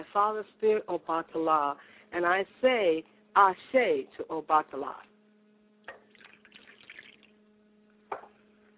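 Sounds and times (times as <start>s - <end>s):
low electrical hum: 0.0s - 8.7s
speech: 0.2s - 5.1s
water poured as libation: 6.1s - 7.3s.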